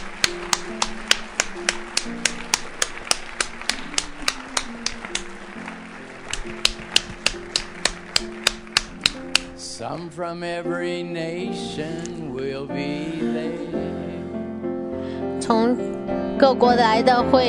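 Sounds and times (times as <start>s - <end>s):
audience clapping in rhythm: 0.0s - 10.1s
speech: 9.8s - 13.9s, 15.5s - 17.4s.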